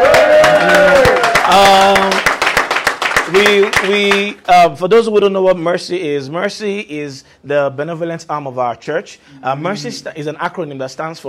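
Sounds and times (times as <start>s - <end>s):
crowd whooping and cheering: 0.0s - 2.1s
audience clapping: 0.0s - 4.5s
speech: 4.5s - 11.2s.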